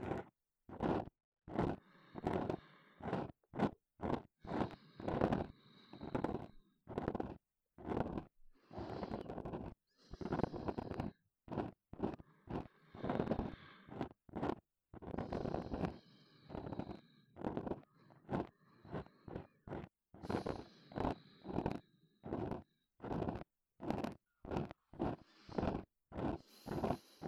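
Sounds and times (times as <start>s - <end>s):
breathing in the left ear: 1.6s - 27.2s
ear cleaning sounds in the left ear: 6.0s - 27.2s.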